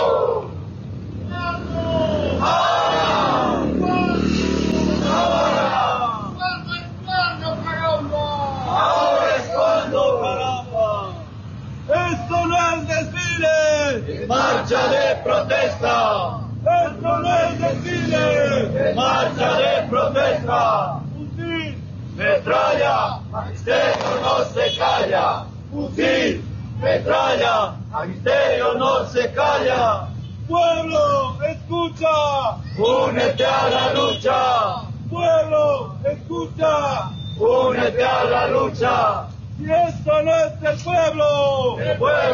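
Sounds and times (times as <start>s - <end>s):
low traffic rumble: 0.0s - 42.3s
large crowd chanting and shouting at a street march: 2.2s - 3.8s, 4.8s - 6.2s, 8.7s - 10.5s, 14.1s - 21.0s, 22.2s - 30.0s, 32.8s - 34.8s, 37.4s - 39.2s, 41.8s - 42.3s.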